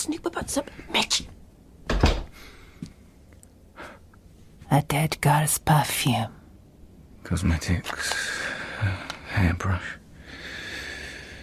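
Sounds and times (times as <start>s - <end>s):
speech: 0.0s - 1.3s, 4.7s - 6.4s, 7.3s - 10.0s
door opening clunk: 1.9s - 2.3s.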